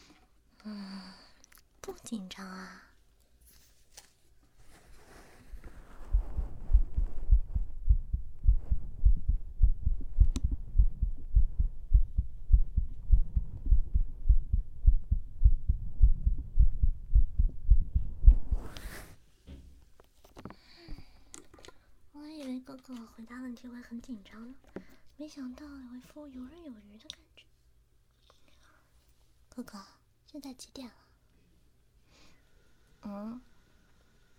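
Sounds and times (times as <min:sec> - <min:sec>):
faint soft sounds: 0:00.0 - 0:34.3
speech: 0:01.8 - 0:02.9, 0:23.0 - 0:27.3, 0:29.6 - 0:31.0, 0:33.0 - 0:33.5
heartbeat thumping: 0:05.6 - 0:18.7.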